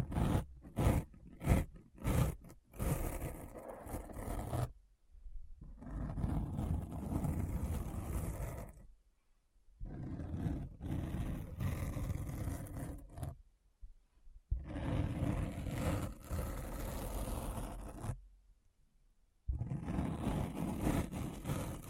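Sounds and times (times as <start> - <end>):
deep rough scratching: 0.0 - 4.7, 5.8 - 8.8, 9.8 - 13.4, 14.6 - 18.0, 19.5 - 21.8.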